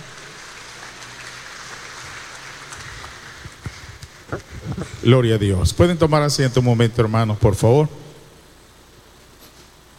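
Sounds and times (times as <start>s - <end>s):
congregation clapping during a church service: 0.0s - 5.0s
speech: 4.3s - 8.0s.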